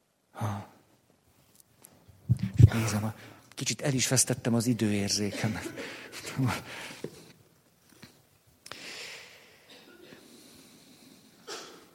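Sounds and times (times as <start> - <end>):
speech: 2.8 - 7.2
person sneezing: 11.4 - 11.9.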